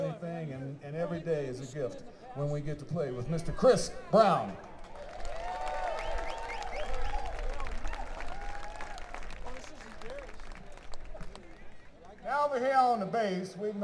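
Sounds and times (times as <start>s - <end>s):
speech: 1.1s - 4.7s, 12.9s - 13.8s
audience applause: 4.6s - 12.2s.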